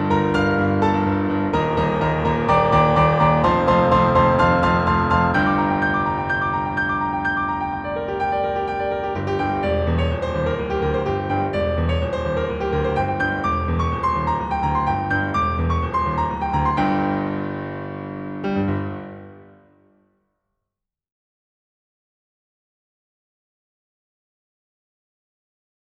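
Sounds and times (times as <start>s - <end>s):
piano music: 0.0s - 20.0s.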